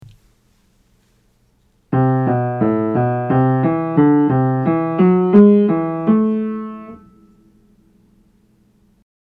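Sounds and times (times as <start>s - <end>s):
minor scales played: 1.9s - 7.8s.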